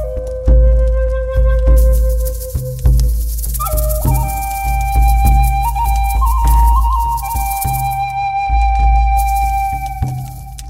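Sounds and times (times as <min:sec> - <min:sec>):
drum beating in fire ritual: 0:00.0 - 0:10.6
flute playing long held notes: 0:00.0 - 0:10.6
thin crackling fire: 0:00.0 - 0:10.6
rattle shaking: 0:01.8 - 0:08.2, 0:09.1 - 0:10.6.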